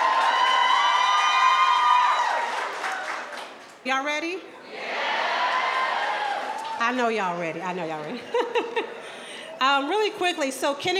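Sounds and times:
audience clapping and cheering: 0.0s - 3.8s, 4.8s - 7.0s
speech: 3.8s - 4.8s, 6.8s - 9.0s, 9.6s - 10.9s
laughter: 8.1s - 9.4s.

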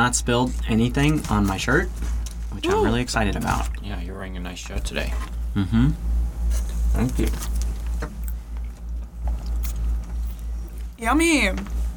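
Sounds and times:
speech: 0.0s - 8.2s, 11.0s - 11.8s
chewing a bite of croissant: 7.0s - 10.9s.

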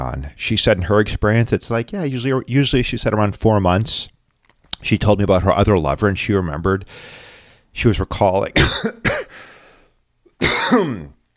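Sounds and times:
speech: 0.0s - 4.1s, 4.8s - 9.5s, 10.4s - 11.2s
person with COVID coughing: 8.6s - 9.5s, 10.4s - 11.2s.

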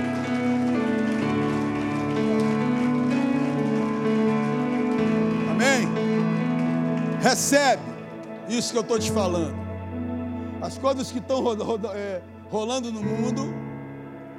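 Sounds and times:
audience applauding: 0.0s - 9.5s
sustained keyboard chords: 0.0s - 14.3s
speech: 7.3s - 7.9s, 8.5s - 9.6s, 10.7s - 13.6s.

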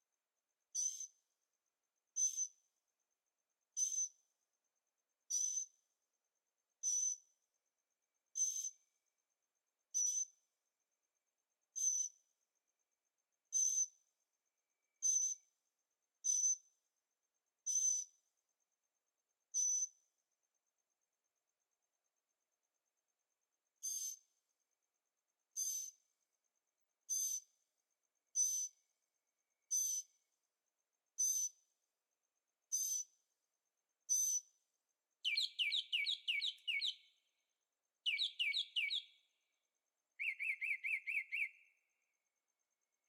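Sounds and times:
bird high hissing whistled calls: 35.3s - 37.0s, 38.1s - 39.0s, 40.2s - 41.5s.

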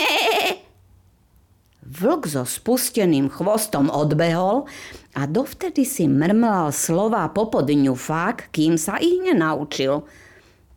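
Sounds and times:
young goat bleating: 0.0s - 0.7s
speech: 2.0s - 10.2s.

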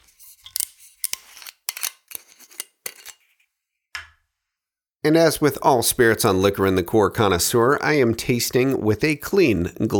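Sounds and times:
metal screw cap being cracked open on a bottle: 0.3s - 3.2s
speech: 5.0s - 9.9s.

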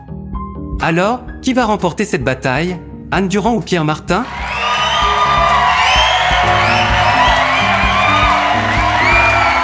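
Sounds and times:
speech: 0.8s - 4.6s
audience applause and cheering: 4.2s - 9.6s.

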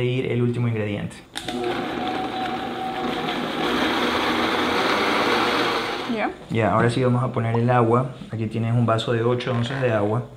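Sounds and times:
speech: 0.0s - 2.3s, 6.1s - 10.3s
blender mixing: 1.4s - 6.3s.

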